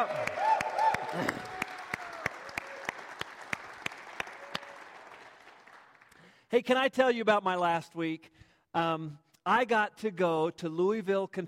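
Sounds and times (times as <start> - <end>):
speech: 0.0 - 0.4, 1.1 - 1.5, 6.5 - 11.4
person whooping: 0.0 - 2.9
audience applause: 0.0 - 6.2
rhythmic clapping: 0.0 - 6.3.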